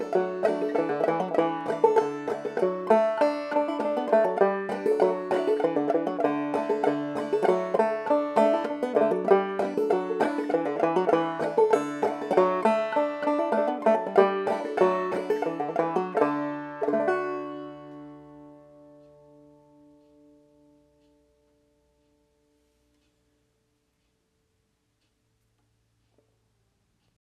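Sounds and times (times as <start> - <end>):
banjo playing D: 0.0 - 20.8.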